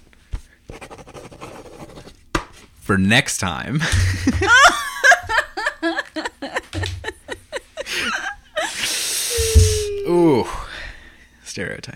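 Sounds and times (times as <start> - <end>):
pen scratching on paper: 0.7 - 2.1
speech: 2.9 - 4.9
laughter: 3.8 - 10.6.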